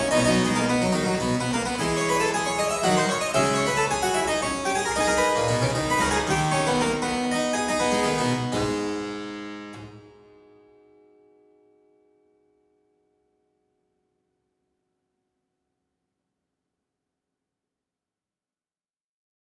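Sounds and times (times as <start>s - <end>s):
harpsichord piece in A minor: 0.0s - 10.3s.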